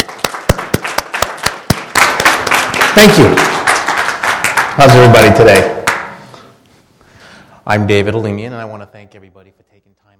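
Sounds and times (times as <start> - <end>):
audience applause for a speaker's introduction: 0.0 - 6.4
speech: 3.0 - 3.5, 4.8 - 5.8, 7.7 - 10.1.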